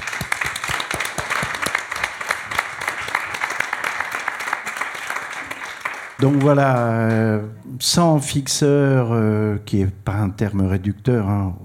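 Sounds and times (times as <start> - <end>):
audience applause: 0.0 - 7.5
speech: 6.2 - 11.6.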